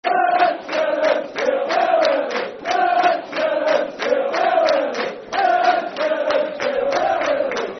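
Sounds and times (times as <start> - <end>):
football crowd chanting: 0.0 - 7.7.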